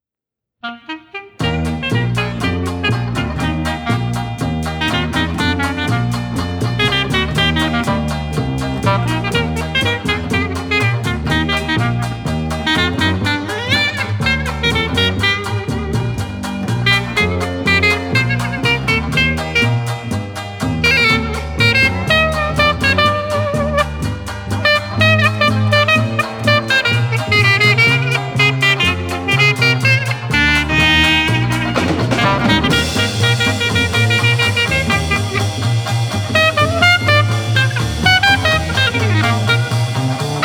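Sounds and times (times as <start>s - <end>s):
Dixieland jazz: 0.6s - 40.4s.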